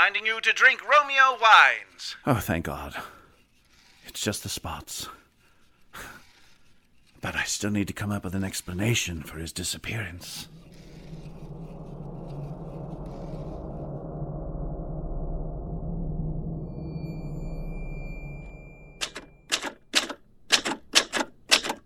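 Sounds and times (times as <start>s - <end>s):
speech: 0.0s - 3.2s, 4.0s - 5.2s, 7.2s - 10.6s
low droning hum: 9.0s - 19.5s
typewriter typing up a resignation letter: 19.0s - 21.8s.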